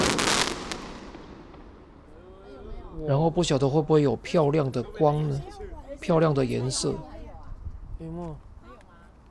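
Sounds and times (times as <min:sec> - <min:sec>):
fireworks exploding: 0:00.0 - 0:02.2
speech: 0:03.0 - 0:07.1, 0:08.0 - 0:08.5.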